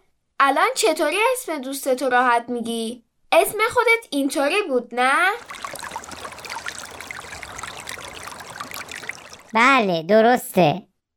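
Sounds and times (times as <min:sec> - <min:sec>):
speech: 0:00.4 - 0:05.7, 0:09.5 - 0:10.9
water dripping: 0:05.3 - 0:09.8.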